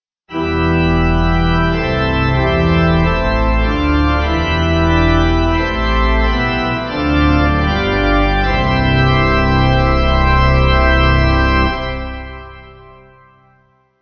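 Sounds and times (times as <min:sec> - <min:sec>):
pipe organ: 0:00.3 - 0:13.6.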